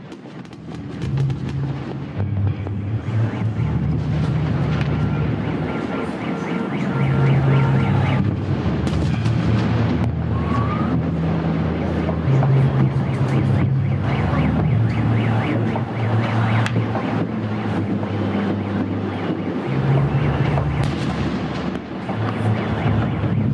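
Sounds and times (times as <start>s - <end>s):
protest crowd noise in Belarus: 0.0s - 23.5s
sharp claps and bangs: 0.0s - 23.5s
low droning tones: 0.7s - 23.5s.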